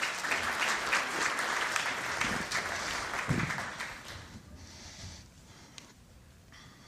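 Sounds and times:
church audience clapping welcoming two invited guests: 0.0s - 4.5s.

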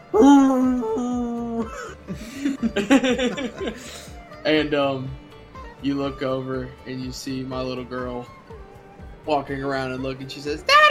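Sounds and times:
man imitating an old basset hound howling: 0.1s - 1.7s
man chuckling: 0.2s - 4.1s
speech: 2.1s - 5.2s, 5.8s - 8.4s, 9.2s - 10.9s.

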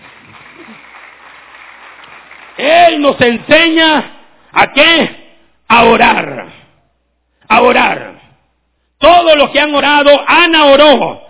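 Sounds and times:
audience applause: 0.0s - 3.0s
speech: 2.6s - 6.4s, 7.5s - 8.1s, 9.0s - 11.2s.

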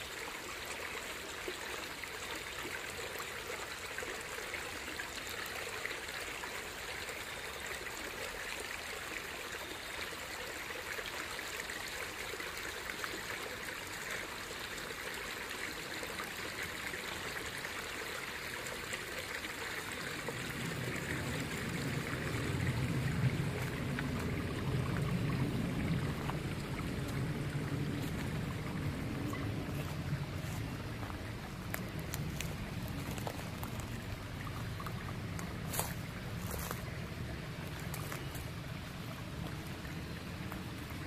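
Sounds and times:
water trickling on a fall nature walk: 0.0s - 41.0s
low rumble: 20.9s - 37.9s.

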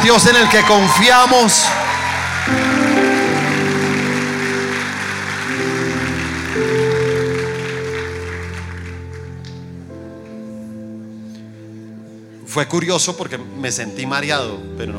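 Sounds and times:
audience applause: 0.0s - 9.6s
speech: 0.1s - 2.8s, 12.5s - 14.9s.

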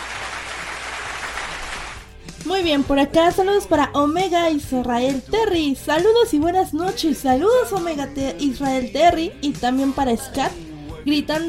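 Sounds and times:
applause for songs on a radio show: 0.0s - 2.1s
speech: 2.5s - 11.4s.

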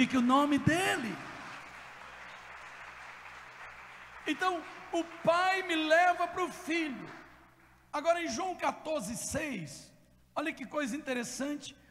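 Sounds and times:
speech: 0.0s - 1.3s, 4.3s - 7.2s, 7.9s - 11.8s
audience applause: 0.0s - 7.4s.

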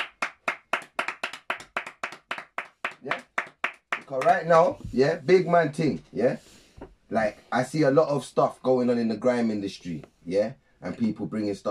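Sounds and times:
people clapping hands: 0.0s - 4.7s
speech: 3.0s - 3.3s, 4.1s - 11.6s.

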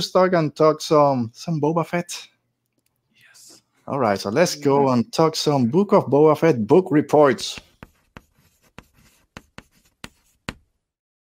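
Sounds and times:
speech: 0.0s - 2.3s, 3.9s - 7.7s
chalk writing on a chalkboard: 7.4s - 10.7s.

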